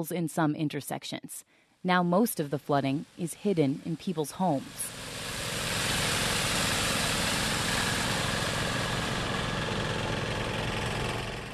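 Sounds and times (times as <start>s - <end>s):
speech: 0.0s - 5.1s
portable water pump engine running: 4.7s - 11.5s.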